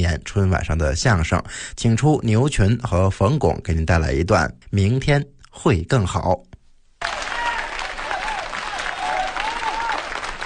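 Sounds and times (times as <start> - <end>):
speech: 0.0 - 7.2
audience applause: 7.0 - 10.4.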